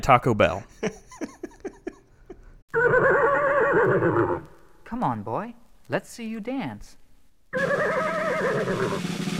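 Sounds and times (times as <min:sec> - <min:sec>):
speech: 0:00.0 - 0:01.0, 0:03.8 - 0:09.3
laughter: 0:00.5 - 0:02.6
horse whinnying: 0:02.7 - 0:04.6, 0:07.5 - 0:09.1.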